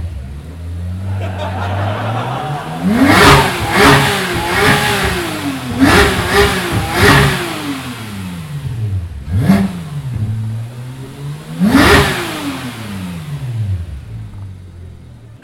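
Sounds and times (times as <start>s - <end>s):
Porsche 911R Typ 991 sports car engine: 0.0s - 15.4s
laughter: 1.0s - 7.3s.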